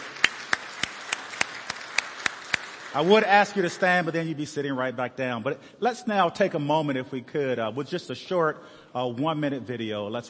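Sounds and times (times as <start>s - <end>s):
round of applause: 0.0s - 4.2s
speech: 2.9s - 10.2s.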